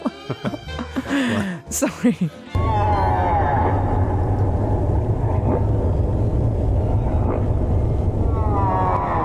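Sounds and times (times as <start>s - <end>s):
laughter: 0.0s - 1.6s
speech: 1.2s - 3.0s
deep whale call: 2.6s - 9.2s
low underwater rumble: 2.6s - 9.2s
rising and falling moans: 2.6s - 9.2s.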